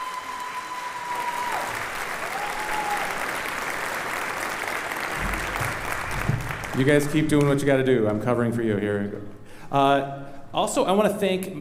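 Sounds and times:
audience applause: 0.0s - 7.6s
speech: 6.8s - 11.6s.

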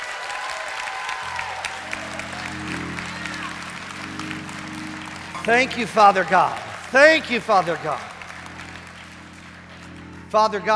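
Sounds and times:
audience clapping: 0.0s - 10.7s
low sustained organ chords: 1.2s - 10.7s
speech: 5.5s - 8.2s, 10.3s - 10.7s.

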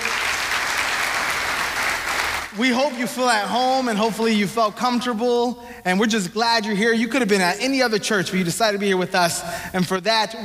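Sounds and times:
church congregation applauding first-time guests at a service: 0.0s - 4.0s
speech: 2.6s - 10.4s.

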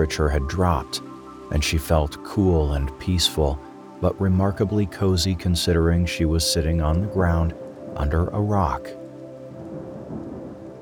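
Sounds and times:
speech: 0.0s - 9.0s
steady rainfall: 0.0s - 10.8s.

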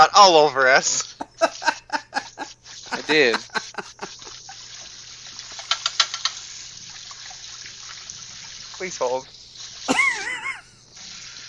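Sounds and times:
speech: 0.0s - 1.7s, 3.0s - 4.0s, 8.8s - 9.4s
laughter: 1.0s - 4.5s, 9.9s - 10.6s
water running from a tap in a washroom: 2.4s - 11.4s.

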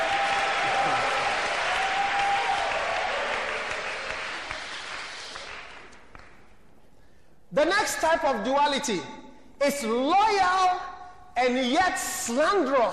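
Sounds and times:
audience applause and clapping: 0.0s - 6.4s
speech: 7.9s - 12.9s.

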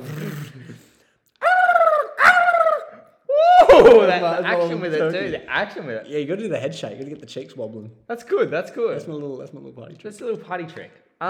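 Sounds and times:
person imitating turkey gobbles: 1.4s - 4.3s
laughter: 1.4s - 5.2s
speech: 3.8s - 11.2s.

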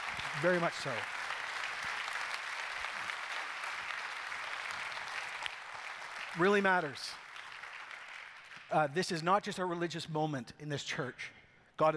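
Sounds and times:
audience applause: 0.0s - 8.7s
speech: 0.4s - 1.2s, 6.4s - 7.2s, 8.7s - 11.9s.

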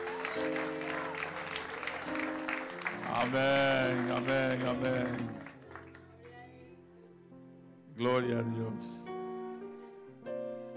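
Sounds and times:
applause: 0.0s - 6.4s
speech: 3.2s - 5.4s, 8.0s - 9.1s.

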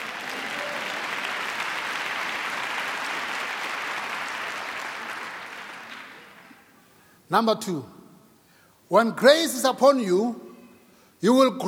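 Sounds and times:
audience applause: 0.0s - 6.5s
speech: 7.3s - 8.0s, 8.9s - 10.4s, 11.2s - 11.6s.

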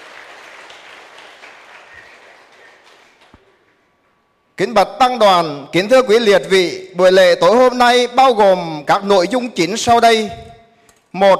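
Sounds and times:
large audience applause: 0.0s - 3.5s
speech: 4.6s - 10.4s, 11.1s - 11.3s.

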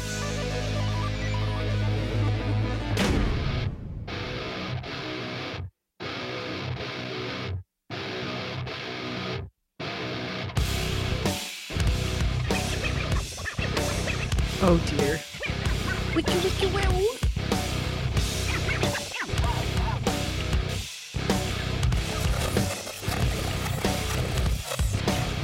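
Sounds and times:
metal song: 0.0s - 25.4s
record scratch in a metal song: 12.2s - 17.1s, 18.3s - 20.2s, 21.9s - 25.4s
speech: 14.6s - 15.2s.

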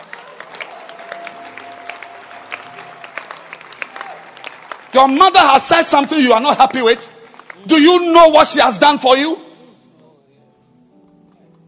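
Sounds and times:
audience clapping hands: 0.0s - 8.4s
speech: 5.0s - 9.4s.

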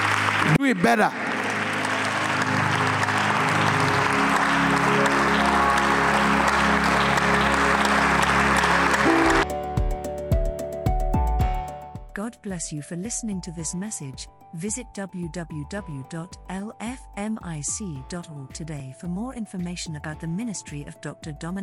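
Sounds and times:
crowd clapping: 0.0s - 9.6s
music with a low drone: 0.0s - 21.6s
speech: 0.6s - 1.2s, 12.3s - 21.6s.

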